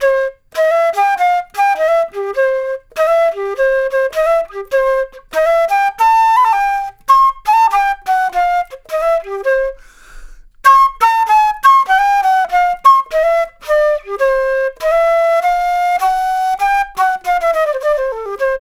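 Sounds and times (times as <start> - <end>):
jazz flute solo: 0.0 - 18.6.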